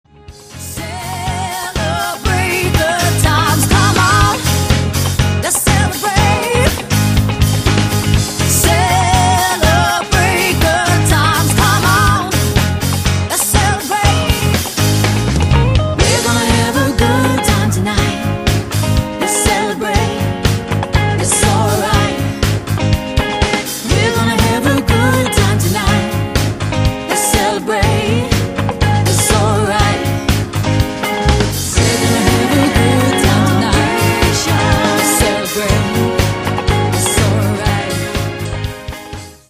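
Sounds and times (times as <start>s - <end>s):
wedding and corporate covers band playing: 0.4s - 39.4s.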